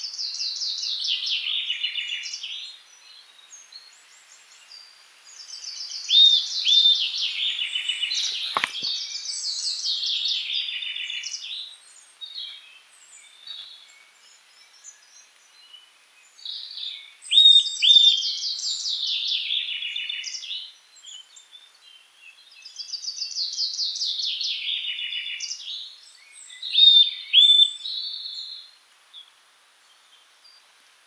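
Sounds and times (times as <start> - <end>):
songbird trilled song: 0.0 - 29.3
Eurasian nuthatch calls: 5.5 - 9.9.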